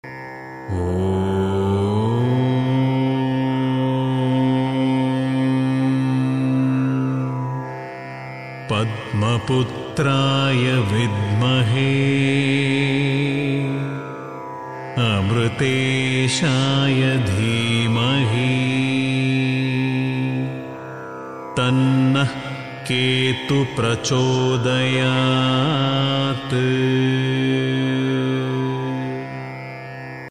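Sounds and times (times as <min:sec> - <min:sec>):
mantra chant: 0:00.7 - 0:07.6, 0:08.7 - 0:14.1, 0:15.0 - 0:20.6, 0:21.6 - 0:29.4.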